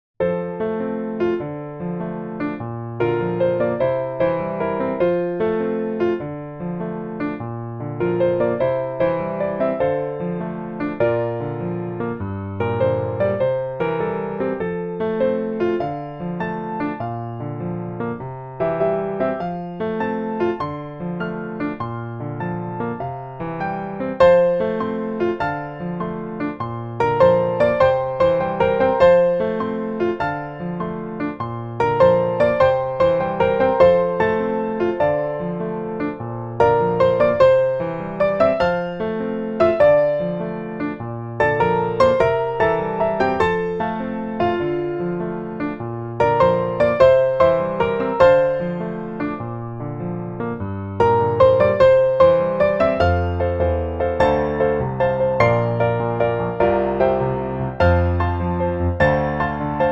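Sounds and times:
two pianos playing: 0.0 - 59.8.

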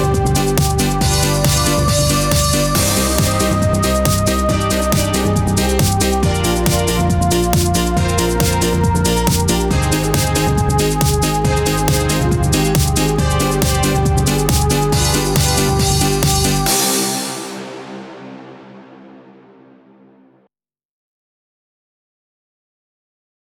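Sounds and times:
pop dance music: 0.0 - 17.7.

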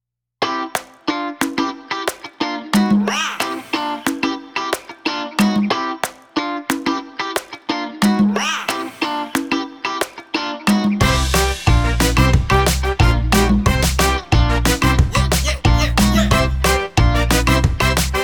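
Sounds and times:
bright Latin music: 0.5 - 18.2.

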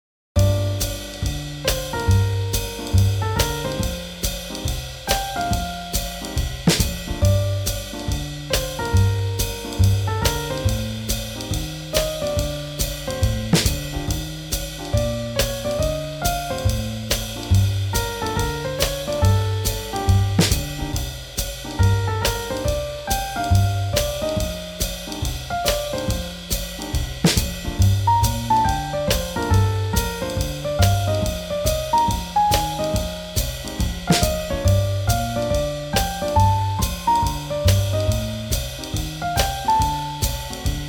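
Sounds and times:
swing jazz: 0.4 - 40.8.

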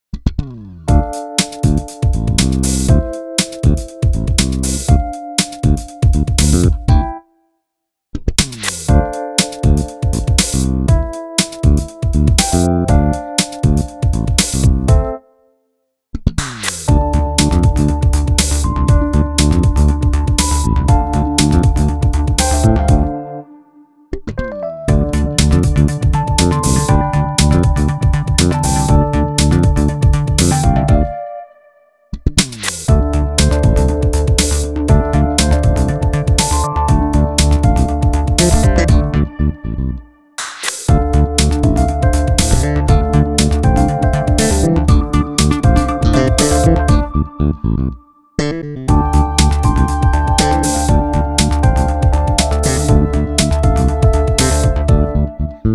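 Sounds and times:
funk music: 0.9 - 7.2, 8.4 - 15.2, 16.6 - 23.7, 24.7 - 31.8, 32.4 - 55.7.

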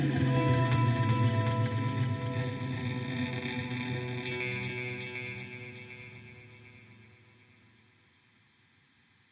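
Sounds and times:
horror tension music: 0.0 - 7.1.

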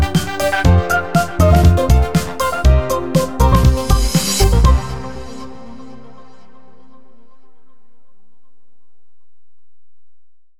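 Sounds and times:
electronic EDM music: 0.0 - 6.2.

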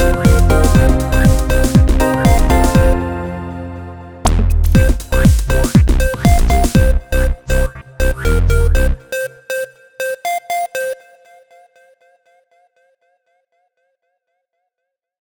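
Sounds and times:
European techno house music: 0.0 - 9.7.

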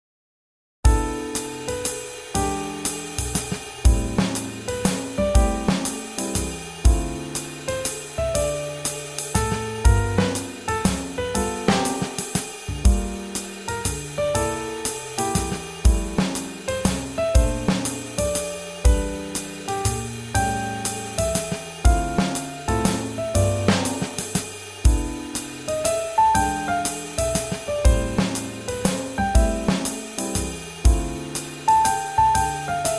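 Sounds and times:
swing jazz: 0.9 - 32.9.

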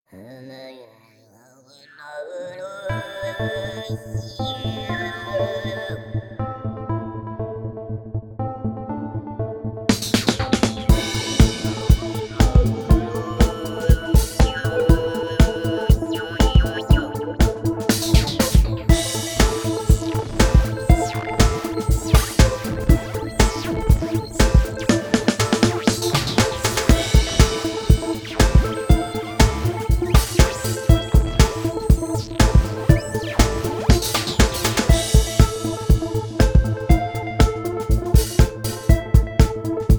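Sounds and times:
ethnic electronica EDM rhythm: 9.9 - 39.9.

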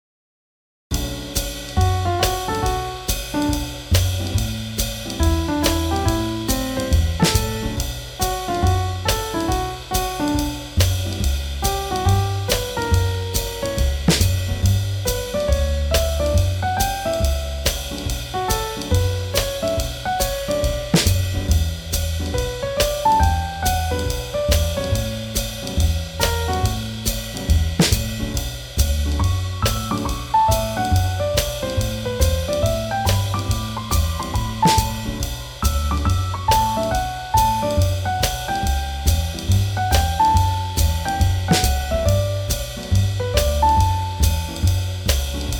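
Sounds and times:
swing jazz: 0.9 - 45.5.

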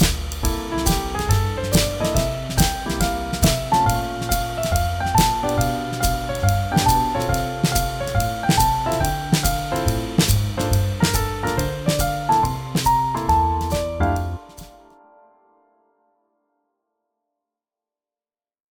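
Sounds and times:
swing jazz: 0.0 - 14.8.

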